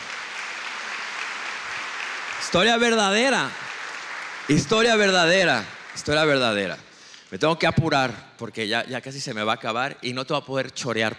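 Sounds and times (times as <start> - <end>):
audience applause: 0.0 - 7.0
speech: 2.4 - 3.6, 4.5 - 11.1.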